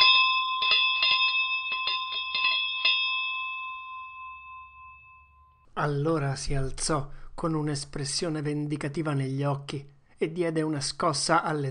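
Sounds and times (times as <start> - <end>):
school bell ringing: 0.0 - 5.7
speech: 5.8 - 11.6.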